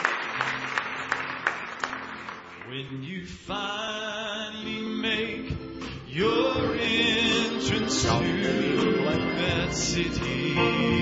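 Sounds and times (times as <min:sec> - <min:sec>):
church congregation clapping hands in praise during a morning service: 0:00.0 - 0:03.0
speech: 0:02.7 - 0:11.0.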